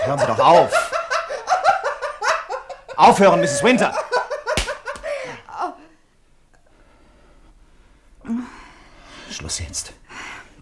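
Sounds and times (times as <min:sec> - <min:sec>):
speech: 0:00.0 - 0:00.8, 0:03.0 - 0:04.1, 0:09.4 - 0:10.3
laughter: 0:00.0 - 0:05.9
slap across the face: 0:04.5 - 0:05.1.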